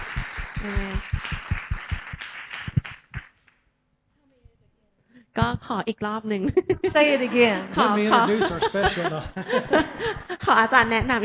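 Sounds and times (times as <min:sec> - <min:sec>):
audience applause welcoming a speaker: 0:00.0 - 0:03.2
low thumps: 0:00.0 - 0:03.3, 0:05.4 - 0:07.0, 0:09.7 - 0:11.2
speech: 0:00.6 - 0:01.4, 0:05.4 - 0:11.2
laughter: 0:06.4 - 0:11.2.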